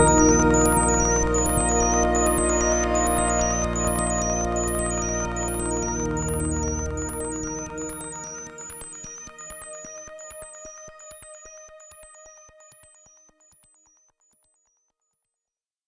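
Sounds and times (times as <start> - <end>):
synthesizer music mix: 0.0 - 9.0.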